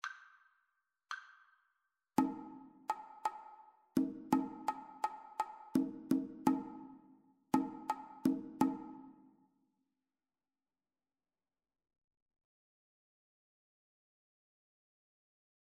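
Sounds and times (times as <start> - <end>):
two-part rhythm: 2.2 - 7.0, 7.6 - 9.1.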